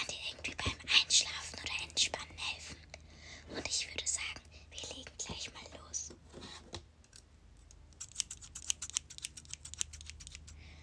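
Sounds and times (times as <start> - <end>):
soft rustling hiss: 0.0 - 6.9
scissors trimming hair ends in an ASMR session: 8.0 - 10.6.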